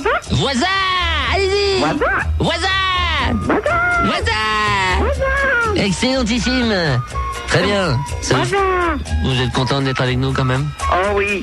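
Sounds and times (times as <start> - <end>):
speech: 0.2 - 2.8, 5.8 - 11.4
person imitating animal noises: 1.6 - 5.9, 8.3 - 9.2.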